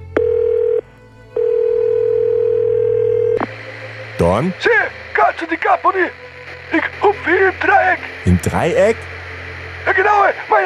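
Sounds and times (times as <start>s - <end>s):
telephone dial tone: 0.2s - 0.8s, 1.4s - 3.4s
speech: 4.2s - 9.1s, 9.8s - 10.6s.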